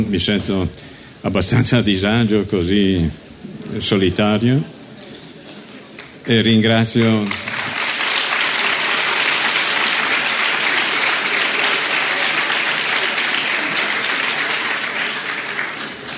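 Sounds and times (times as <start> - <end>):
speech: 0.0 - 4.8, 6.3 - 7.4
audience applause: 7.0 - 16.1.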